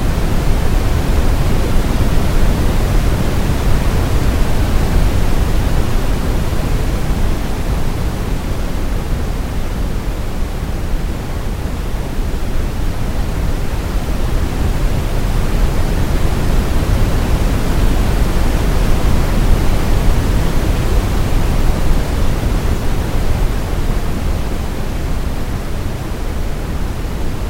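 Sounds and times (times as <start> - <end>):
oscillating pink noise: 0.0 - 27.4.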